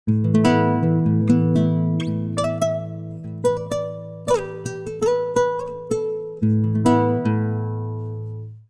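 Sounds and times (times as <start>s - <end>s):
time-stretched guitar: 0.1s - 8.6s.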